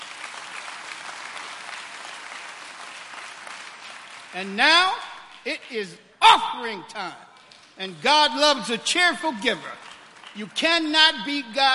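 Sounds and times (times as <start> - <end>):
audience applauding visitors: 0.0 - 5.5, 9.2 - 11.7
speech: 4.3 - 7.2, 7.8 - 11.7.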